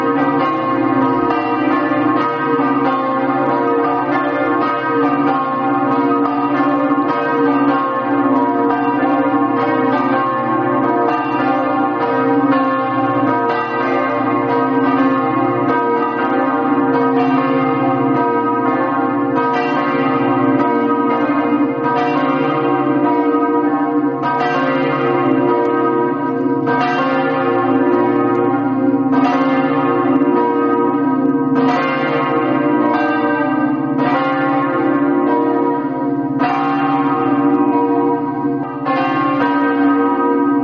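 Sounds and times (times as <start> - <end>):
bells ringing in Lestizza: 0.0 - 40.6.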